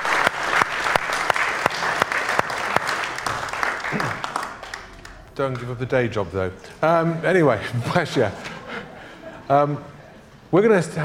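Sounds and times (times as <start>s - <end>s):
audience round of applause: 0.0s - 5.7s
laughter: 3.8s - 4.4s, 7.5s - 10.3s
speech: 5.4s - 8.5s, 9.5s - 11.0s.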